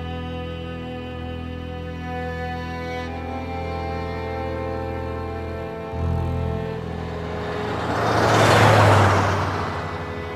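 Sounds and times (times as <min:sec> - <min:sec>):
steady engine drone with low humming tones: 0:00.0 - 0:10.3
two cars speeding past on a country highway through Arizona: 0:04.9 - 0:10.3.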